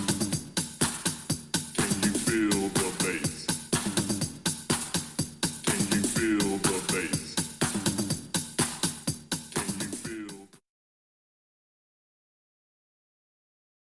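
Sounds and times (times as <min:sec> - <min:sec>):
bass: 0:00.0 - 0:10.6.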